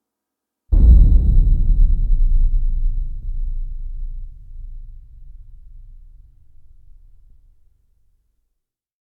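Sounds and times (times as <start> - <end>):
drums: 0.7 - 7.4.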